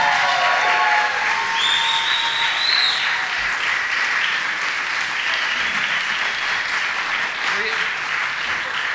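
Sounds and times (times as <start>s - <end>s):
cheers and high whistles: 0.0s - 3.4s
crowd clapping: 0.0s - 8.9s.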